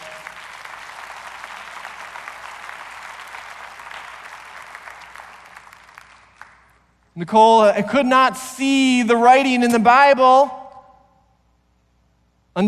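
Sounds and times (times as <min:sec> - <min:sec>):
audience applause: 0:00.0 - 0:06.8
speech: 0:07.2 - 0:10.6.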